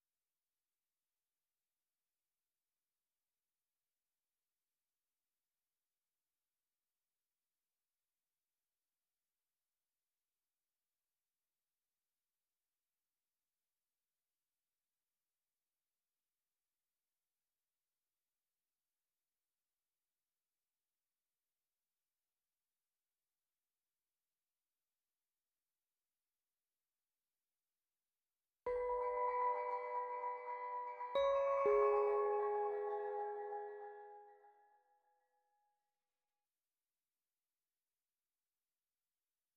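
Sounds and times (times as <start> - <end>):
piano piece: 28.7 - 34.3.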